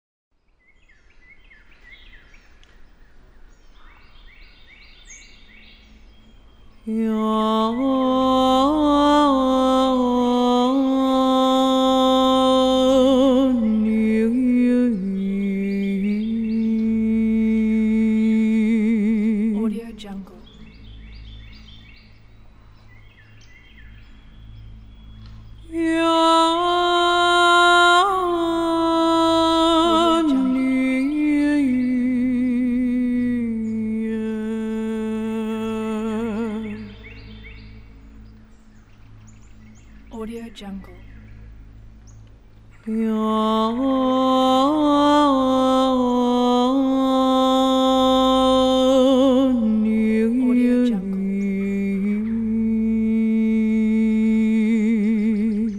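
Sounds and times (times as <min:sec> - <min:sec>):
shamanic woman chanting in the forest: 0:06.8 - 0:20.8, 0:25.6 - 0:37.4, 0:40.1 - 0:41.1, 0:42.8 - 0:55.7.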